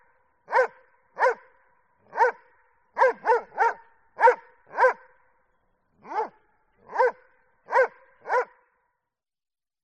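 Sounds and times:
Dobermann barking: 0.5s - 1.5s, 2.1s - 5.1s, 6.0s - 8.7s.

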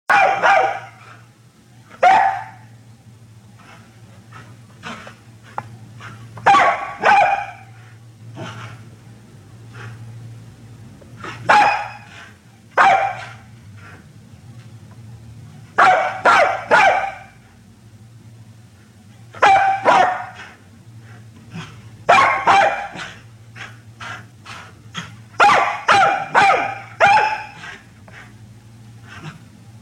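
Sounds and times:
low steady hum: 0.1s - 29.8s
small dog yapping: 2.0s - 2.6s, 6.4s - 7.6s, 11.5s - 12.0s, 19.4s - 20.4s, 22.1s - 23.1s, 25.4s - 27.6s.

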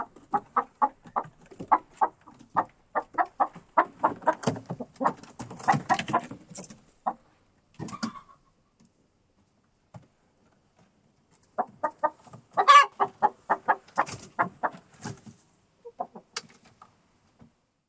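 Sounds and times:
chicken clucking: 0.0s - 8.8s, 11.4s - 16.6s.

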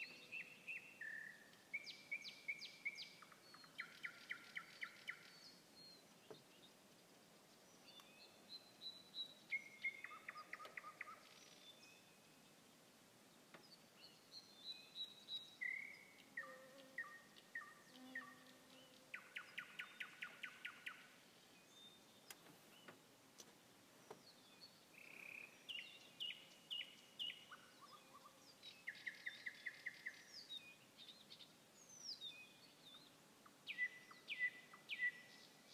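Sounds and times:
nightingale song: 0.0s - 35.7s.

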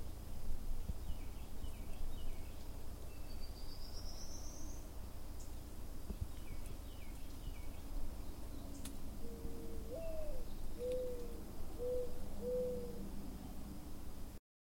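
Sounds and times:
rushing background hiss: 0.0s - 14.4s
owl hooting: 9.2s - 13.0s.

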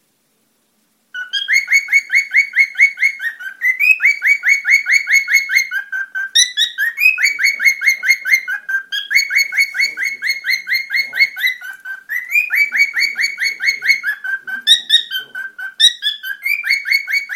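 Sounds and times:
cockatiel warbling song: 1.2s - 17.3s.

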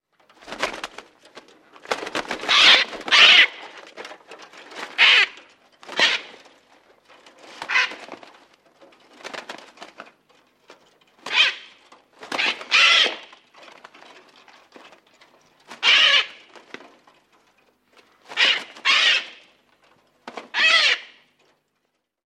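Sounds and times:
parrot squawking: 2.5s - 3.7s, 5.0s - 6.4s, 7.7s - 8.0s, 11.3s - 11.7s, 12.3s - 13.3s, 15.8s - 16.3s, 18.4s - 19.4s, 20.5s - 21.2s.

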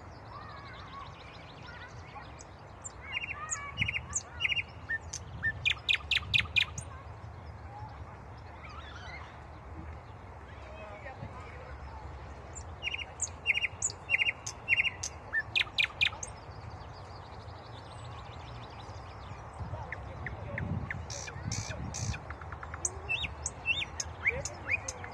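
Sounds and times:
common nightingale singing: 2.8s - 6.9s, 12.6s - 16.5s, 19.9s - 25.1s.

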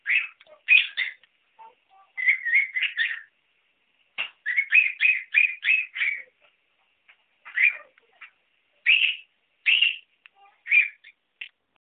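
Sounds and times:
cockatiel trilling: 0.0s - 1.2s, 2.1s - 3.3s, 4.4s - 6.3s, 7.5s - 7.9s, 8.8s - 11.2s.

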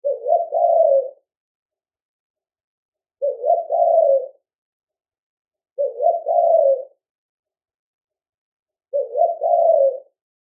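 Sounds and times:
spotted dove cooing: 0.0s - 1.2s, 3.2s - 4.4s, 5.8s - 7.0s, 8.9s - 10.2s.

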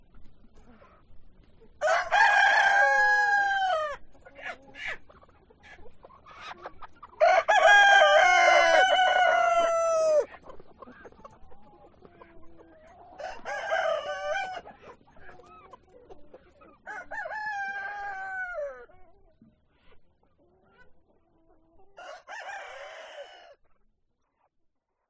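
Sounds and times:
hens clucking softly: 0.0s - 25.0s
rooster crowing: 1.8s - 4.0s, 7.2s - 10.3s, 13.2s - 14.7s, 16.9s - 18.8s, 22.0s - 23.6s.

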